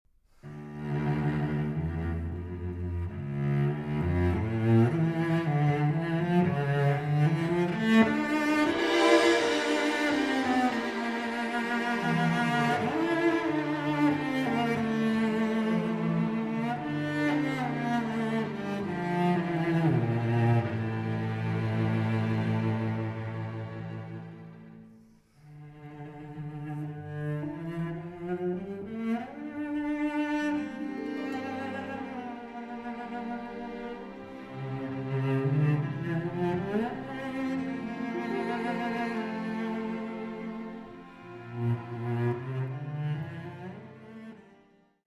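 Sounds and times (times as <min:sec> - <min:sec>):
cello and orchestra: 0:00.4 - 0:45.0.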